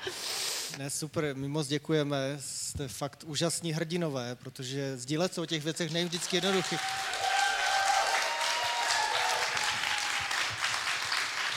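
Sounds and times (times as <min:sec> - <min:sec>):
speech: 0:00.1 - 0:07.0
audience applause: 0:05.9 - 0:11.5.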